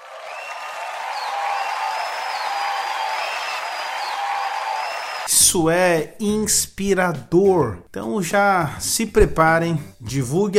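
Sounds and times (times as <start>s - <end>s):
round of applause: 0.0s - 5.3s
speech: 5.3s - 10.5s.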